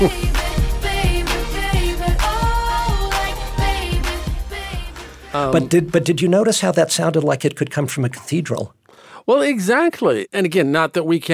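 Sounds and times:
speech: 0.0s - 0.4s, 5.3s - 11.3s
upbeat pop song at normal speed: 0.0s - 6.4s.

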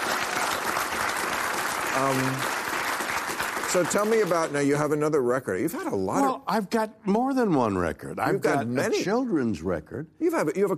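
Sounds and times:
applause: 0.0s - 4.9s
speech: 2.0s - 2.5s, 3.7s - 10.7s.

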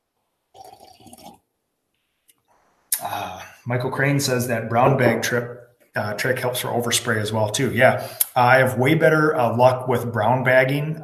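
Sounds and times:
tea being poured or slurped: 0.5s - 1.5s
speech: 3.7s - 11.0s.

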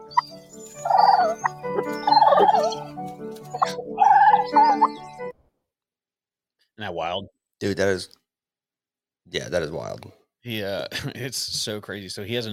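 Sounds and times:
wild turkey gobbling: 0.8s - 2.9s, 3.6s - 5.0s
speech: 6.8s - 8.2s, 9.3s - 12.5s.

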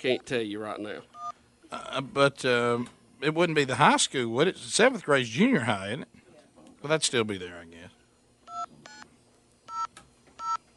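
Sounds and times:
speech: 0.0s - 6.2s, 6.8s - 8.0s
telephone keypad DTMF tones as a number is dialed: 9.7s - 10.6s.

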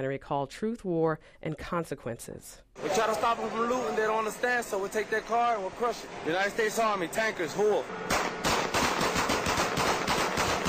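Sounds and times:
speech: 0.0s - 8.2s
rapid gunfire: 8.1s - 10.6s.

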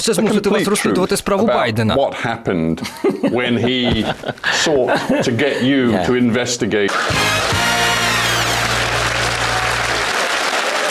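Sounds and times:
speech: 0.0s - 7.6s
laughter: 2.8s - 5.8s
studio audience applause: 6.9s - 10.8s.

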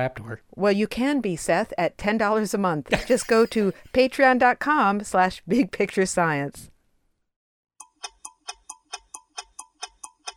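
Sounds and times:
speech: 0.0s - 6.7s
clock ticking: 7.8s - 10.3s.

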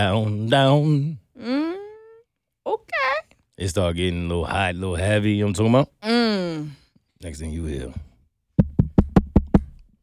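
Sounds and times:
speech: 0.0s - 1.6s, 3.6s - 8.1s
knocking on a door: 8.6s - 9.8s.

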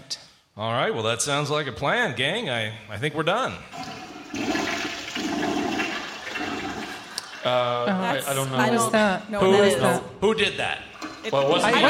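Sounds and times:
speech: 0.6s - 4.0s, 7.4s - 11.8s
toilet flushing: 3.7s - 8.4s, 10.6s - 11.8s.

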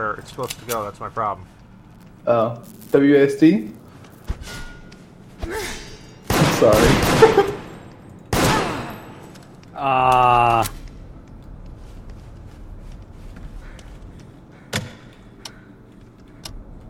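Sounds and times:
speech: 0.0s - 1.6s, 2.3s - 3.8s, 6.6s - 7.5s, 9.8s - 10.8s
gunfire in a multiplayer shooter video game: 6.3s - 9.3s.

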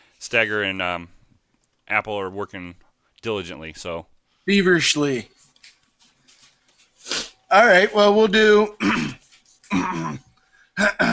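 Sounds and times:
speech: 0.2s - 1.2s, 1.9s - 5.4s, 7.5s - 11.1s
person clearing throat: 8.8s - 11.1s.

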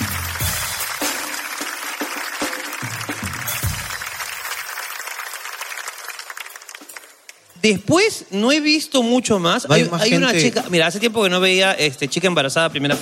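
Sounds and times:
audience applause: 0.0s - 7.5s
speech: 7.6s - 13.0s.

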